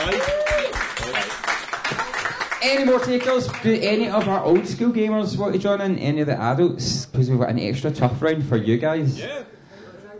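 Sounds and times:
person whooping: 0.0 - 0.8
audience applause: 0.0 - 4.7
speech: 2.6 - 9.6.

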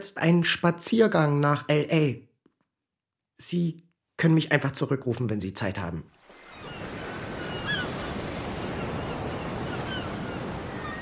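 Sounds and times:
speech: 0.0 - 2.3, 3.4 - 6.2
steady ocean surf beneath a pier in Los Angeles: 6.1 - 11.0
thin faint bird calls: 6.4 - 11.0.

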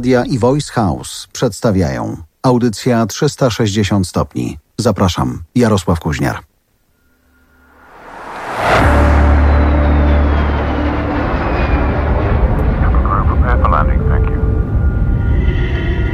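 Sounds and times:
speech: 0.0 - 6.5
private Embraer Legacy 600 business jet landing at Le Bourget: 7.6 - 16.1.

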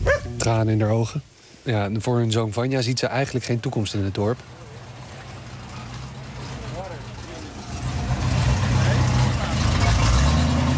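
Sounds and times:
speech: 0.4 - 4.6
truck filled with drinking water driving past: 4.3 - 10.7.

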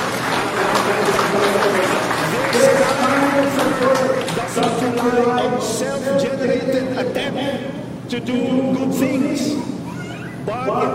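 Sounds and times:
church congregation applauding loudly: 0.0 - 5.7
speech: 5.0 - 9.7, 10.4 - 10.9.

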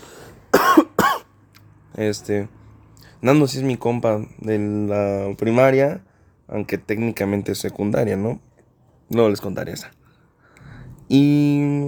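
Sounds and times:
cough: 0.5 - 1.3
speech: 2.0 - 2.6, 3.2 - 8.5, 9.1 - 10.0, 11.1 - 11.8.

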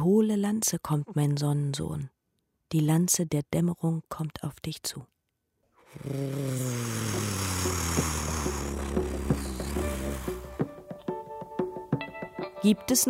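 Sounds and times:
speech: 0.0 - 5.1, 5.9 - 9.2, 12.6 - 13.0
propeller airplane flying: 7.0 - 10.7.

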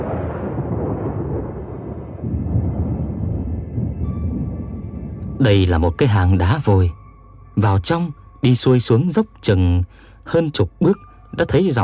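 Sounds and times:
rumbling thunder: 0.0 - 6.0
speech: 5.4 - 7.0, 7.6 - 11.8.

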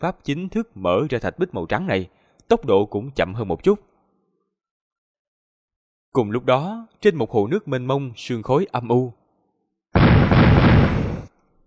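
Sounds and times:
speech: 0.0 - 3.9, 6.1 - 9.2
booming explosions: 10.0 - 11.3.

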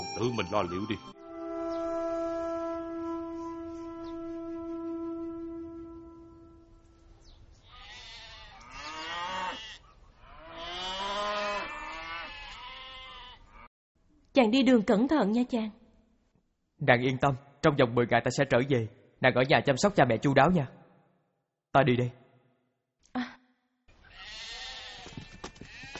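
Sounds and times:
speech: 0.2 - 1.2, 14.4 - 15.8, 16.8 - 20.8, 21.7 - 22.2
long steady low horn-like tone: 1.2 - 7.1
livestock being herded bleating in chorus: 7.6 - 13.7, 24.0 - 25.9.

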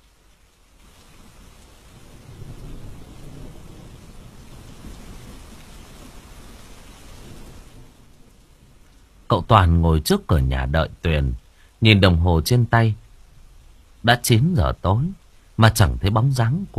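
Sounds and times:
heavy rain: 0.0 - 16.7
thunder: 2.0 - 5.4
speech: 9.3 - 13.0, 14.0 - 16.7.

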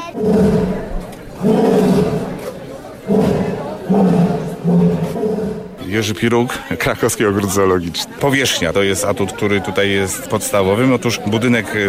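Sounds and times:
all-black jaguar roaring at the Kraków zoo: 0.0 - 6.0
speech: 0.2 - 0.8, 5.9 - 11.8.

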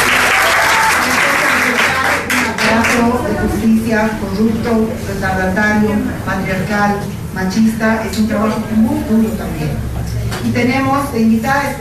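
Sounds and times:
audience applause for a speaker at an evening debate on feminist self-defense: 0.0 - 3.4
speech: 3.0 - 11.7.

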